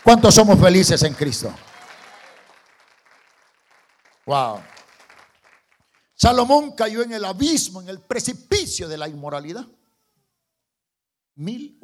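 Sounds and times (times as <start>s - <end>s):
speech: 0.0s - 1.7s, 4.3s - 4.8s, 6.2s - 9.8s, 11.4s - 11.8s
audience applause: 0.0s - 6.2s.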